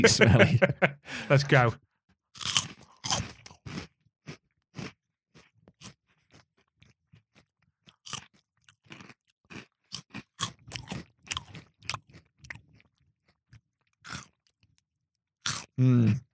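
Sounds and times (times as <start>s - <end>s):
laughter: 0.0s - 1.7s
speech: 0.0s - 1.8s, 15.8s - 16.2s
crunching Buffalo spicy chicken snacks: 2.4s - 14.8s, 15.4s - 15.8s.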